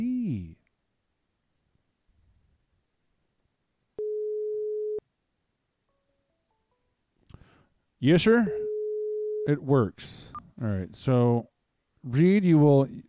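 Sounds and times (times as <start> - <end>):
faint noise: 0.0 - 13.0
telephone line tone during a test call: 4.0 - 5.0, 8.6 - 9.5
speech: 8.0 - 8.7, 9.5 - 13.0.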